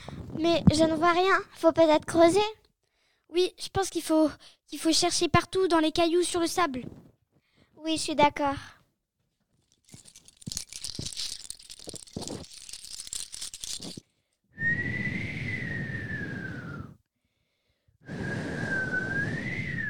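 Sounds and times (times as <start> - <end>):
speech: 0.4 - 2.6, 3.3 - 7.1, 7.8 - 8.8
strong wind whistling: 14.6 - 17.0, 18.1 - 19.8.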